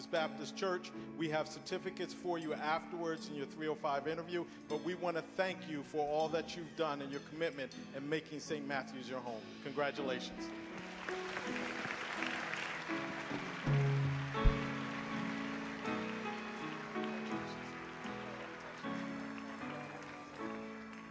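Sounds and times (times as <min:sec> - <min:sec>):
speech: 0:00.1 - 0:11.8
audience applauding: 0:10.8 - 0:21.0.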